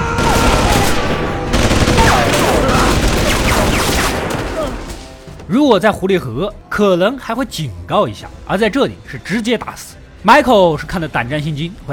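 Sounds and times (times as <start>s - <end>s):
burst of gunfire from guard post: 0.2s - 4.9s
speech: 5.5s - 11.9s.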